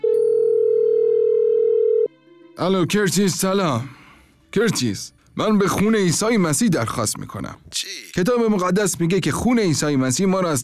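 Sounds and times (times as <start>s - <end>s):
steady telephone tone on the line as a call is placed: 0.0s - 2.1s
speech: 2.6s - 10.6s.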